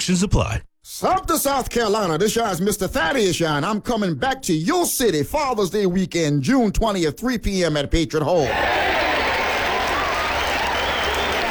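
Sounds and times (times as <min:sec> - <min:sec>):
speech: 0:00.0 - 0:09.2
audience clapping: 0:08.4 - 0:11.5.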